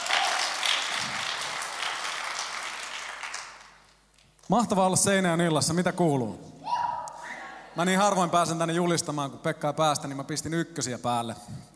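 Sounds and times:
audience applause: 0.0s - 3.9s
speech: 4.5s - 6.5s, 7.8s - 11.7s.

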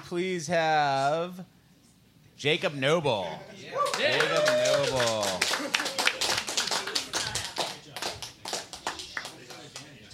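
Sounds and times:
speech: 0.1s - 1.6s, 2.4s - 5.5s
small group applauding: 3.8s - 10.1s.

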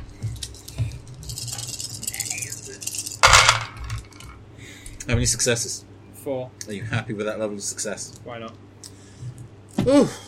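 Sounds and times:
dice clattering across a hard surface: 0.4s - 4.4s
speech: 5.1s - 8.6s, 9.8s - 10.2s.

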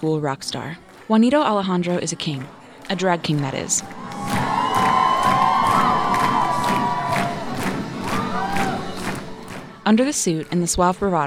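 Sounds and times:
speech: 0.0s - 4.2s, 9.9s - 11.2s
audience roaring and cheering: 1.8s - 10.7s.

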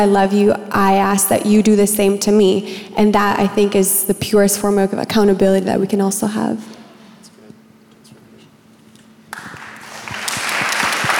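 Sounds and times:
speech: 0.0s - 6.8s
audience applause after a panel answer: 9.3s - 11.1s.

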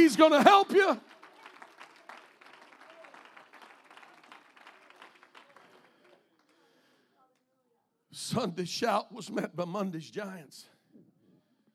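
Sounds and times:
speech: 0.0s - 1.2s, 8.2s - 10.7s
audience hand clapping: 0.0s - 6.9s.

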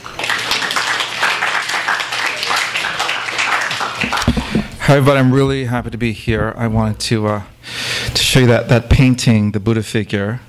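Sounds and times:
audience applause: 0.0s - 4.8s
speech: 4.9s - 10.4s.

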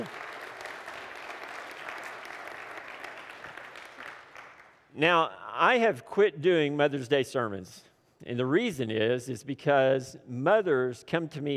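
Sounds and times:
church congregation clapping on Mother's Day: 0.0s - 5.0s
speech: 5.0s - 11.5s.

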